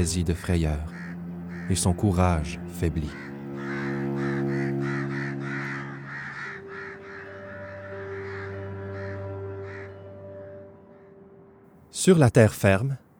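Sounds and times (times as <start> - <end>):
speech: 0.0 - 1.0, 1.7 - 3.3, 12.0 - 13.0
crow cawing hoarsely: 0.4 - 10.3.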